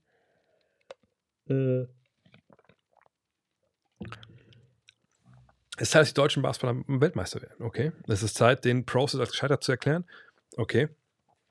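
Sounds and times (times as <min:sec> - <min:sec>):
speech: 0:01.5 - 0:02.0, 0:05.8 - 0:11.0
person sipping and swallowing a non-alcoholic cold drink: 0:01.6 - 0:03.2, 0:04.0 - 0:05.4.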